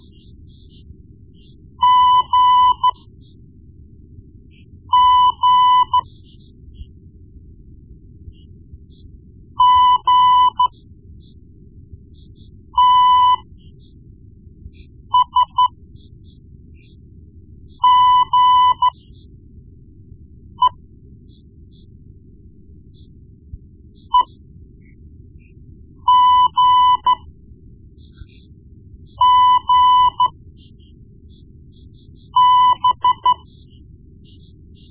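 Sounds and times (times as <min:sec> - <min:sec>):
morse code beeps: 0:01.8 - 0:03.0, 0:04.9 - 0:06.1, 0:09.6 - 0:10.8, 0:12.8 - 0:13.5, 0:15.2 - 0:15.8, 0:17.8 - 0:19.0, 0:26.0 - 0:27.3, 0:29.2 - 0:30.4, 0:32.2 - 0:33.5.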